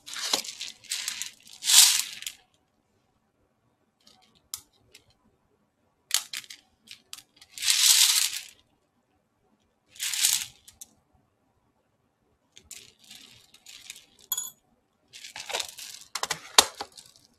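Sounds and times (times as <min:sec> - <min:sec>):
hand picking rattling and clattering: 0:00.0 - 0:02.4, 0:06.3 - 0:08.5, 0:12.6 - 0:14.3, 0:15.2 - 0:16.3.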